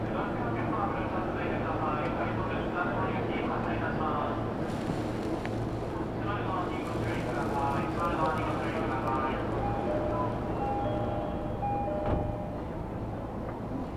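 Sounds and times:
voices: 0:00.1 - 0:12.1
Tokyo Metro train rumbling between Iidabashi and Nishi-Funabashi: 0:04.1 - 0:13.8
announcement-like tones: 0:08.2 - 0:12.8.

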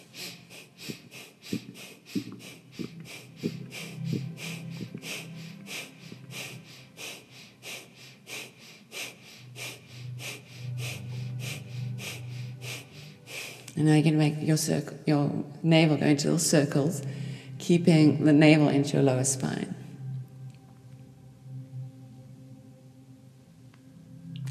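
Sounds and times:
breath of fire, rapid sharp nasal exhalations in yogic breathwork: 0:00.0 - 0:13.8
low drone: 0:00.0 - 0:15.0, 0:16.5 - 0:24.4
speech: 0:13.8 - 0:19.8.

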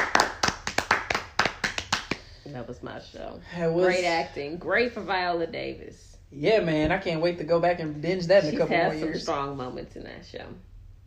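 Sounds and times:
clapping: 0:00.0 - 0:02.2
speech: 0:02.5 - 0:10.7.

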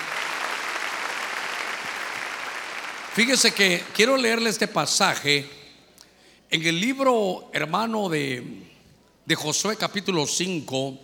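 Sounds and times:
audience clapping loudly: 0:00.0 - 0:04.0
speech: 0:03.2 - 0:05.6, 0:06.5 - 0:08.7, 0:09.3 - 0:11.0.

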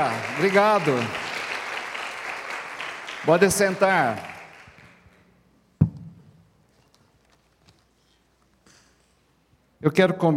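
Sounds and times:
speech: 0:00.0 - 0:01.2, 0:03.2 - 0:04.3, 0:09.8 - 0:10.3
audience applause: 0:00.0 - 0:05.0.

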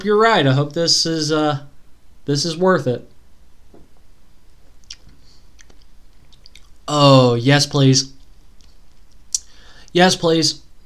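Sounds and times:
speech: 0:00.0 - 0:01.7, 0:02.3 - 0:03.1, 0:06.9 - 0:08.2, 0:10.0 - 0:10.6
person biting and chewing food: 0:04.8 - 0:06.8.

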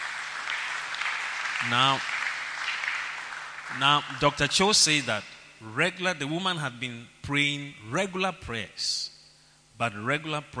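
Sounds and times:
audience clapping: 0:00.0 - 0:05.4
speech: 0:01.6 - 0:02.1, 0:03.7 - 0:09.1, 0:09.8 - 0:10.5.

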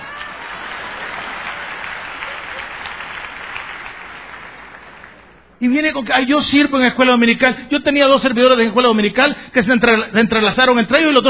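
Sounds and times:
audience applause: 0:00.0 - 0:05.4
speech: 0:05.6 - 0:11.2.

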